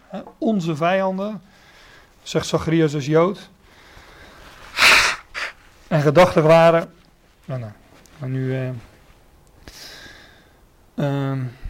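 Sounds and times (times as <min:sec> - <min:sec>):
speech: 0:00.1 - 0:01.6, 0:02.2 - 0:03.6, 0:05.9 - 0:08.9, 0:11.0 - 0:11.6
person blowing nose: 0:04.6 - 0:05.6.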